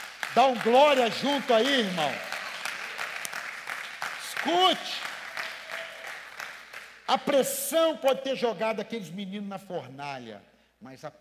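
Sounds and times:
audience applause: 0.0 - 7.0
speech: 0.4 - 2.3, 4.4 - 5.1, 7.1 - 11.1.

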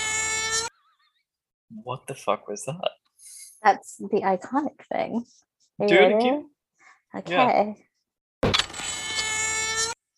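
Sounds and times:
speech: 1.8 - 3.0, 3.6 - 6.5, 7.1 - 8.6
camera shutter click: 8.5 - 9.4.

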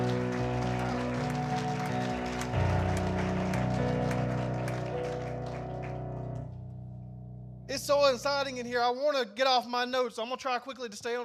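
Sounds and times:
audience clapping: 0.0 - 6.6
sustained chord-like instrumental music: 0.0 - 8.5
speech: 7.7 - 11.2.

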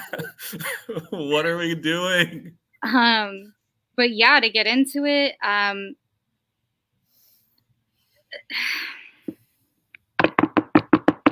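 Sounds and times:
laughter: 0.0 - 2.5
speech: 0.1 - 6.0, 8.4 - 8.9
knocking hard on wood: 10.2 - 11.3.

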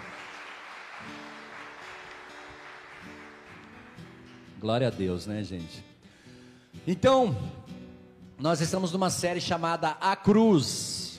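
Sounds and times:
audience applauding: 0.0 - 4.6
speech: 4.6 - 5.9, 6.9 - 7.6, 8.4 - 11.0.

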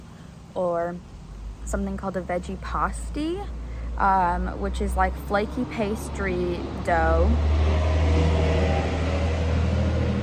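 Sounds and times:
speech: 0.6 - 8.3
bus driving past: 2.6 - 10.2.

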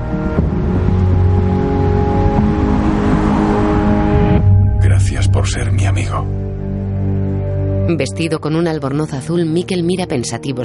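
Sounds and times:
car engine droning on a motorway toward Göteborg: 0.0 - 7.2
speech: 7.9 - 10.6.

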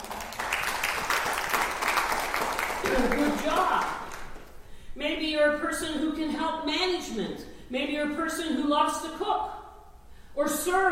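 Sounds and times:
audience applause: 0.0 - 4.5
speech: 2.9 - 4.0, 5.0 - 9.6, 10.4 - 10.9.

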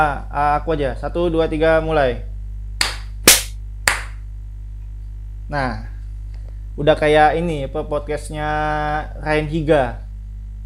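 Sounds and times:
speech: 0.0 - 2.3, 5.5 - 5.9, 6.8 - 10.0
hand clapping: 2.8 - 4.2.

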